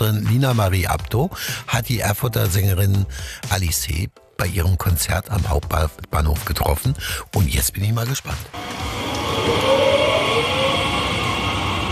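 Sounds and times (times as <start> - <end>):
speech: 0.0 - 9.8
rail cars braking: 8.5 - 11.9.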